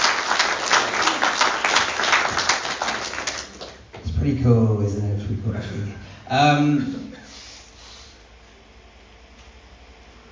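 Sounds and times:
audience applause: 0.0s - 3.8s
speech: 4.2s - 7.2s.

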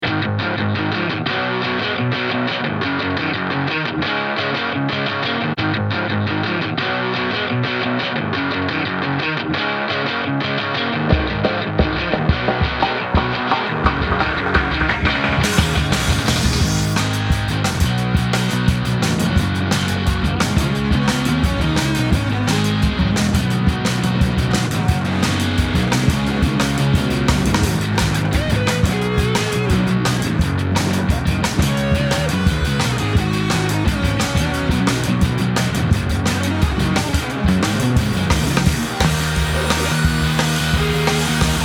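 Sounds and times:
garage rock instrumental: 0.0s - 41.6s.

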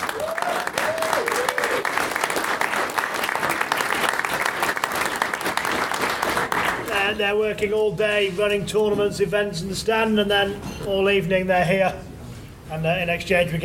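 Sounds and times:
high vocal whoop: 0.0s - 1.9s
audience applause: 0.0s - 7.1s
speech: 7.1s - 12.1s, 12.7s - 13.6s.

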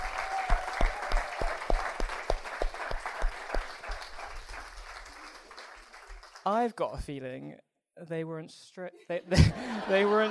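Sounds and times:
audience applause: 0.0s - 6.5s
speech: 6.5s - 10.2s
laughter: 9.2s - 10.2s.

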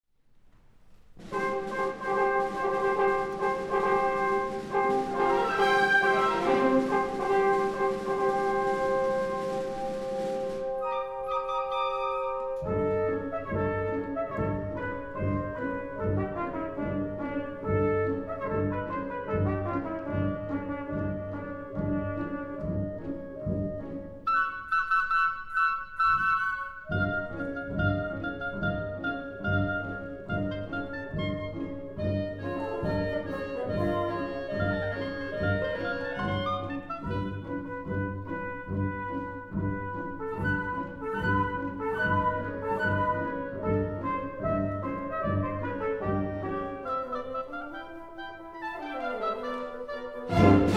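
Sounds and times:
small orchestra playing a suite: 1.2s - 50.7s.

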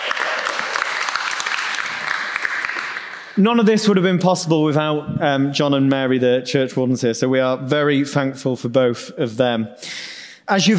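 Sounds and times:
crowd applauding: 0.0s - 3.7s
speech: 3.4s - 10.7s.

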